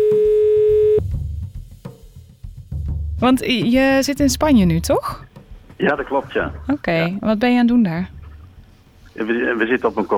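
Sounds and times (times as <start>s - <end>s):
telephone ringing tone while calling: 0.0s - 1.0s
low busy rumbling background: 2.9s - 5.4s, 6.0s - 9.6s
speech: 3.2s - 8.2s, 9.2s - 10.1s.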